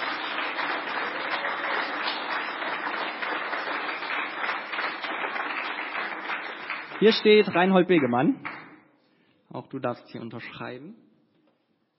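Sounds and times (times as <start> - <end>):
audience clapping: 0.0 - 8.8
speech: 7.0 - 8.5, 9.5 - 11.0.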